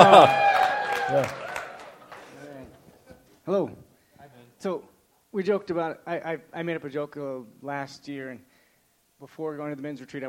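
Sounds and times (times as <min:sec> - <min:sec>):
speech: 0:00.0 - 0:00.4, 0:01.1 - 0:01.4, 0:03.5 - 0:03.8, 0:04.6 - 0:08.5, 0:09.2 - 0:10.2
audience cheering: 0:00.0 - 0:02.5
scattered clapping: 0:00.2 - 0:02.3.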